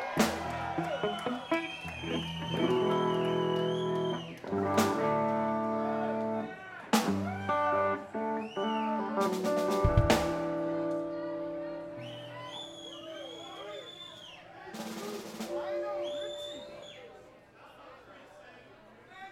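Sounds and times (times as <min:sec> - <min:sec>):
space funk music: 0:00.2 - 0:13.3, 0:14.7 - 0:16.9.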